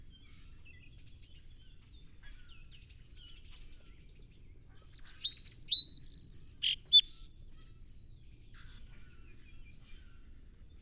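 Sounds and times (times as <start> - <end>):
song sparrow song: 4.2 - 8.1.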